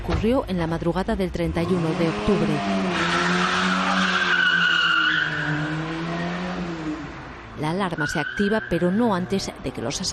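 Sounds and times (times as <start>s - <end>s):
speech: 0.0s - 3.3s, 7.6s - 10.1s
getaway car tires squealing in a skid: 1.6s - 9.4s.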